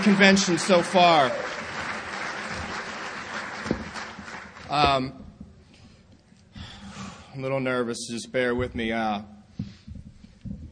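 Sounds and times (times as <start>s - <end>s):
speech: 0.0s - 1.6s, 4.7s - 5.2s, 7.4s - 9.3s
audience applause: 0.0s - 4.9s.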